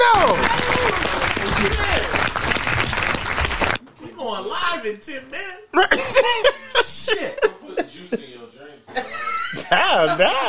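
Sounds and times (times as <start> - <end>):
clapping: 0.0 - 3.8
speech: 4.8 - 7.5, 9.8 - 10.4
laughter: 5.8 - 8.2, 8.9 - 10.4.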